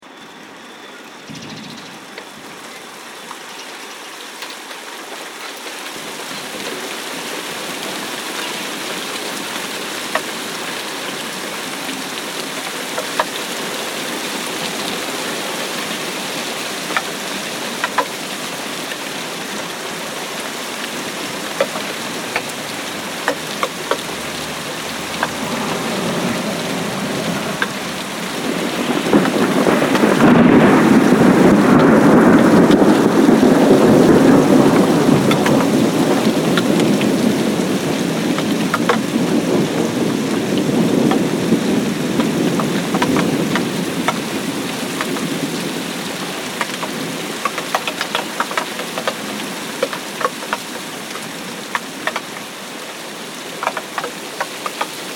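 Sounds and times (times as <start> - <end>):
rain: 0.0 - 55.1
thunder: 23.3 - 44.3.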